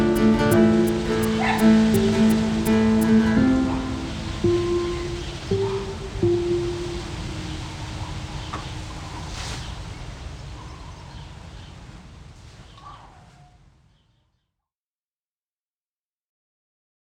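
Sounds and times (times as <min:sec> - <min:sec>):
garden ambience on a hot summer day: 0:00.0 - 0:11.9.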